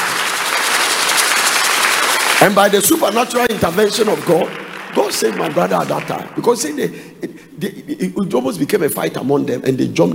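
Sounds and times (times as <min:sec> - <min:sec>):
audience clapping: 0:00.0 - 0:07.1
speech: 0:02.4 - 0:10.1.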